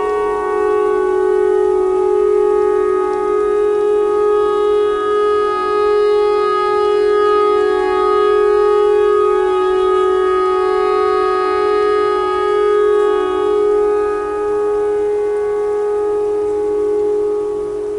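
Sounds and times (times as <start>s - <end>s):
clarinet notes in E pentatonic: 0.0s - 17.9s
tornado siren: 0.0s - 17.9s.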